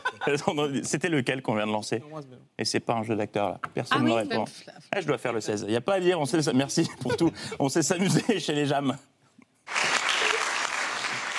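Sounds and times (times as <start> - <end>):
speech: 0.2 - 9.1
applause at a JAM gathering: 9.7 - 11.3.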